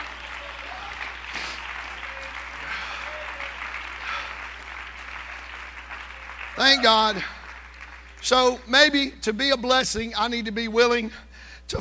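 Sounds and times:
audience applause: 0:00.0 - 0:08.5
speech: 0:06.6 - 0:07.4, 0:08.2 - 0:11.8.

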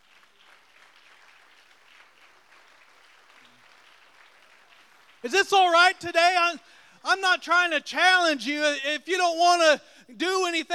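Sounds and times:
crowd clapping: 0:00.0 - 0:06.4
speech: 0:05.2 - 0:10.7.

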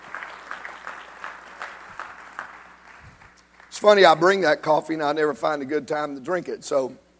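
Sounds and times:
crowd clapping in rhythm: 0:00.0 - 0:04.3
speech: 0:03.8 - 0:07.0.

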